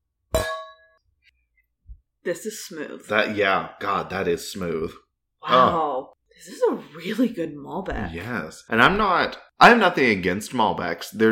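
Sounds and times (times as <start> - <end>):
wine glasses clinking in a toast: 0.4 - 1.0
speech: 2.2 - 11.3.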